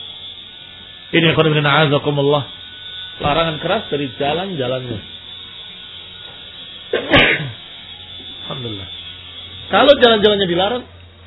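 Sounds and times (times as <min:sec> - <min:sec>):
speech: 0:01.1 - 0:02.6, 0:03.2 - 0:05.1, 0:09.7 - 0:11.2
sneeze: 0:07.0 - 0:07.5.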